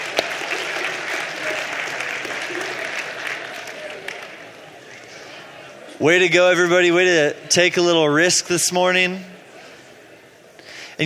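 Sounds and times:
group round of applause: 0.0 - 5.1
speech: 6.0 - 9.3.

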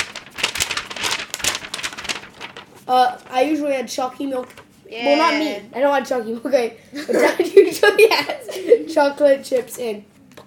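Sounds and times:
paper rustling: 0.0 - 4.8
speech: 2.9 - 10.4.

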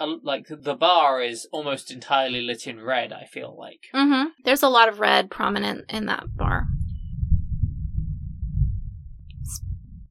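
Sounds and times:
speech: 0.0 - 6.7, 9.5 - 9.7
thunder from an early thunderstorm: 6.2 - 10.0.

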